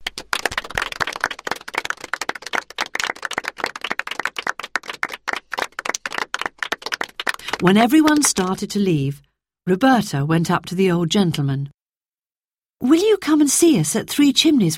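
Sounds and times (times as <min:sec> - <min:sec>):
crowd clapping loudly: 0:00.0 - 0:08.6
speech: 0:07.6 - 0:11.8, 0:12.8 - 0:14.7.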